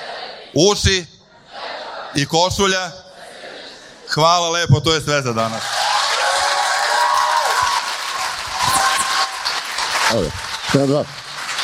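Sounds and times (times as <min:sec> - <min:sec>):
speech: 0:00.5 - 0:01.1, 0:02.2 - 0:03.0, 0:04.1 - 0:05.8, 0:10.1 - 0:11.2
audience applause at the close of a lecture: 0:05.5 - 0:11.6.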